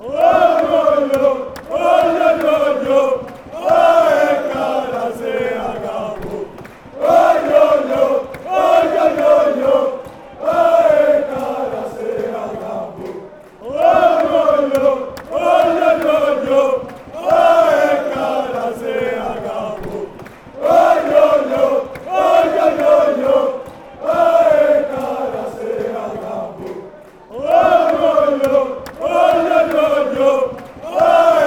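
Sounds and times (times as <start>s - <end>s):
chanting: 0.0s - 31.4s.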